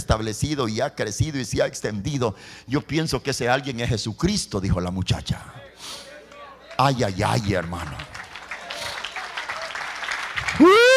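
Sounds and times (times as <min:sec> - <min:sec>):
speech: 0:00.1 - 0:06.1, 0:06.8 - 0:08.1
audience applause: 0:06.8 - 0:10.9.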